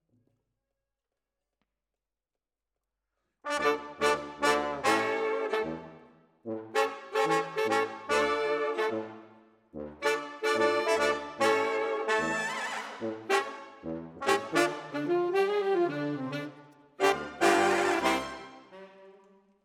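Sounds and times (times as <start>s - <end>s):
saxophone: 3.5s - 6.0s, 6.6s - 19.6s.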